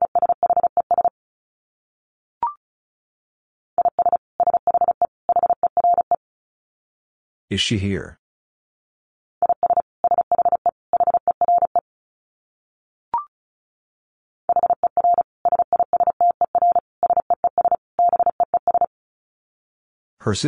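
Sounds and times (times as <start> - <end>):
Morse code tones at 35 words per minute: 0.0 - 1.1, 3.8 - 6.2, 9.4 - 11.8, 14.5 - 18.9
speech: 7.5 - 8.2, 20.2 - 20.4.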